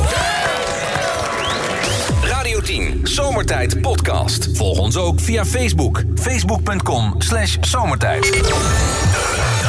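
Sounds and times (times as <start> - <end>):
applause: 0.0 - 2.2
speech: 3.5 - 9.5.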